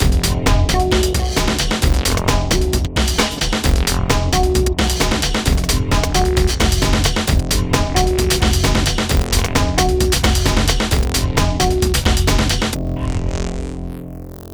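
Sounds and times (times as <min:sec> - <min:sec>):
hardcore breakbeat: 0:00.0 - 0:12.8.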